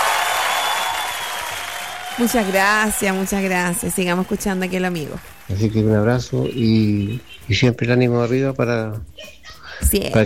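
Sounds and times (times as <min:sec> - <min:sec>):
large crowd clapping in an ovation: 0:00.0 - 0:08.0
speech: 0:02.2 - 0:10.2.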